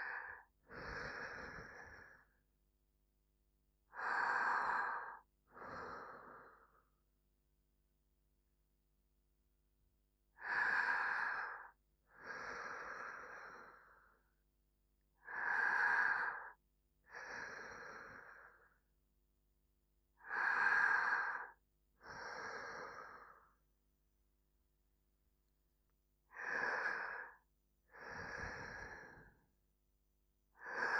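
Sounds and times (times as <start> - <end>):
sleeping breath: 0.0 - 2.4, 3.9 - 7.0, 10.4 - 14.3, 15.2 - 18.8, 20.2 - 23.6, 26.3 - 29.5, 30.6 - 30.9.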